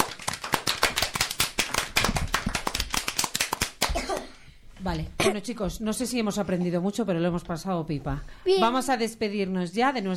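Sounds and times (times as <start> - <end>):
audience applause: 0.0 - 4.0
speech: 4.8 - 10.1.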